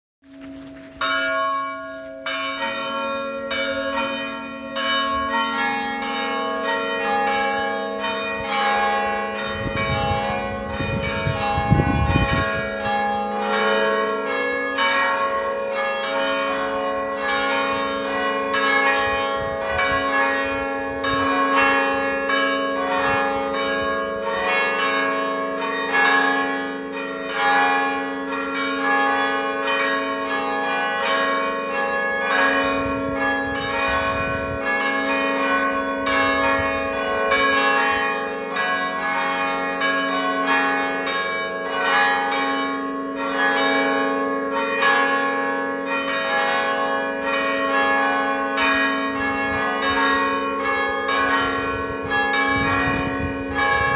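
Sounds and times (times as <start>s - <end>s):
church bells ringing on Palm Sunday: 0.3s - 53.9s.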